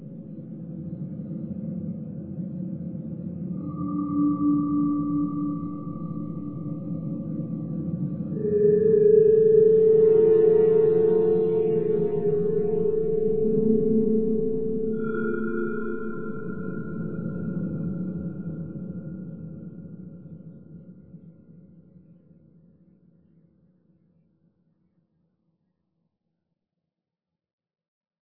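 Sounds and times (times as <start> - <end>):
drone: 3.3 - 19.9.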